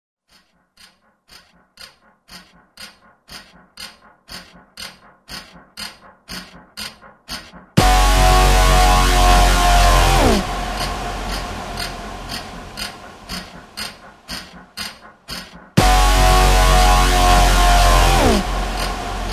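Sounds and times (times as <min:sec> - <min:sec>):
terror trailer music: 0:07.8 - 0:19.3.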